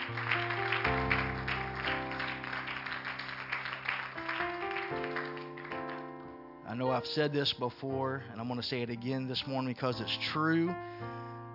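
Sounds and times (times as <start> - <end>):
crowd applause: 0.0 - 6.2
speech: 6.8 - 11.5.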